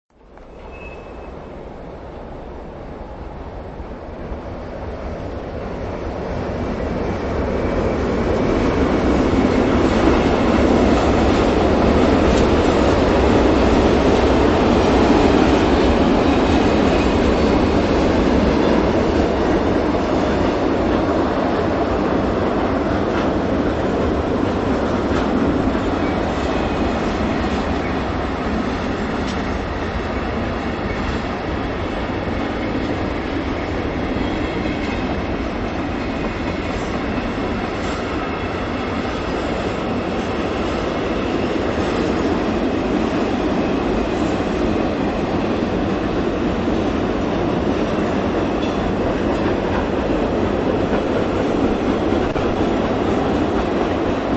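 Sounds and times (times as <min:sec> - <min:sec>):
freight train passing: 0:00.1 - 0:54.3.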